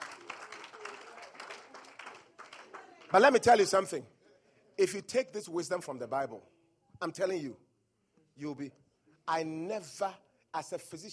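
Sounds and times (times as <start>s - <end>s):
audience applauding: 0.0s - 3.4s
speech: 3.1s - 4.2s, 4.8s - 7.6s, 8.4s - 11.1s.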